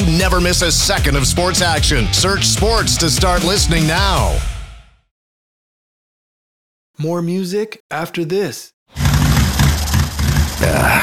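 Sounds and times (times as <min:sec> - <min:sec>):
speech: 0:00.2 - 0:04.5, 0:07.0 - 0:08.8
motorcycle engine sputtering: 0:09.0 - 0:10.6.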